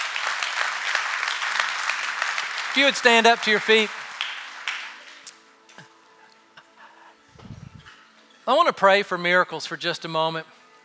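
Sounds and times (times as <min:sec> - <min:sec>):
audience clapping: 0:00.0 - 0:05.5
speech: 0:02.8 - 0:04.0, 0:08.5 - 0:10.6.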